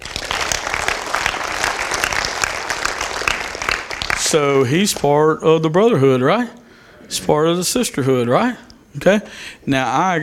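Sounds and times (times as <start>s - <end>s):
audience clapping: 0.0s - 5.1s
speech: 4.3s - 10.2s.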